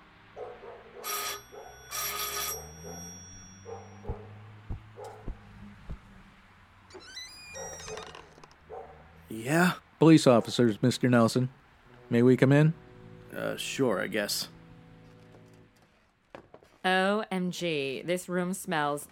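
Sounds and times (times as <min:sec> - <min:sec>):
doorbell ringing: 0:01.0 - 0:04.3
speech: 0:09.4 - 0:14.6, 0:16.9 - 0:19.0.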